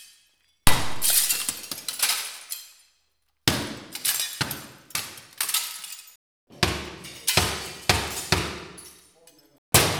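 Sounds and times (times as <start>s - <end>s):
glass breaking: 0.0s - 2.9s, 3.5s - 9.1s.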